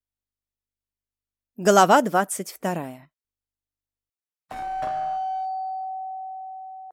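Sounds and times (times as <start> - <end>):
speech: 1.6 - 3.1
doorbell ringing: 4.5 - 6.9.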